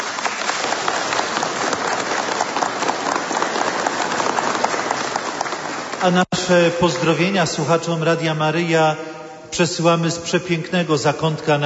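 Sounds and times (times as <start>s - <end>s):
audience applause: 0.0s - 6.2s
speech: 6.0s - 11.6s.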